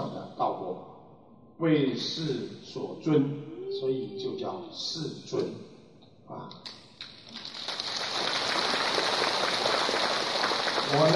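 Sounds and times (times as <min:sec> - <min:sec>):
speech: 0:01.6 - 0:05.7, 0:06.3 - 0:07.5, 0:10.9 - 0:11.1
audience applause: 0:07.3 - 0:11.1.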